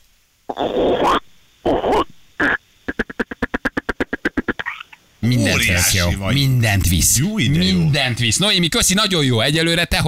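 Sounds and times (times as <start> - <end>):
person imitating frog croaks: 0.5 - 6.6
speech: 0.6 - 1.2, 5.4 - 10.0.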